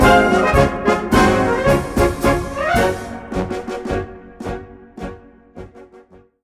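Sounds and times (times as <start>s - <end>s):
march music: 0.0s - 6.3s.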